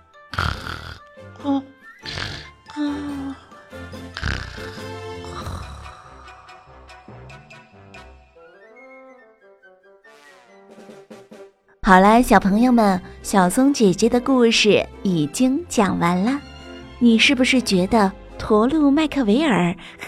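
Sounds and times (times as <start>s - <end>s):
snoring: 0.3s - 3.4s, 4.0s - 6.8s
speech: 11.9s - 20.0s.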